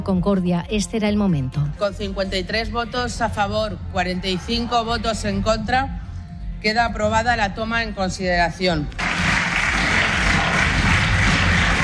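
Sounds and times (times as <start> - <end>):
speech: 0.0 - 6.0, 6.6 - 9.0
parliament applause: 9.0 - 11.8.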